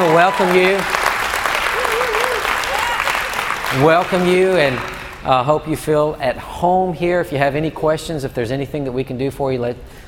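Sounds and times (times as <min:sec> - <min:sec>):
church congregation clapping: 0:00.0 - 0:05.5
speech: 0:00.1 - 0:01.0, 0:03.7 - 0:10.0.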